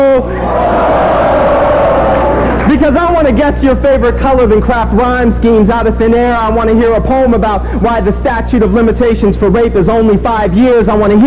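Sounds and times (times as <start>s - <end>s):
audience yelling ho and cheering: 0.2s - 2.9s
speech: 2.8s - 11.2s.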